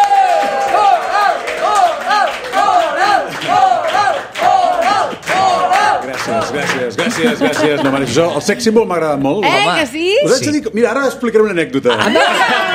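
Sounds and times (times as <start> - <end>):
audience applause: 0.0 - 8.0
laughter: 6.4 - 8.8, 11.8 - 12.7
speech: 7.0 - 12.6.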